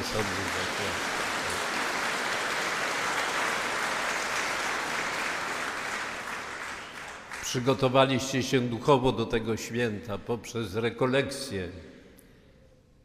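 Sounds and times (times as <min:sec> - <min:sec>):
audience applause: 0:00.0 - 0:07.6
speech: 0:00.1 - 0:01.1, 0:07.5 - 0:11.9.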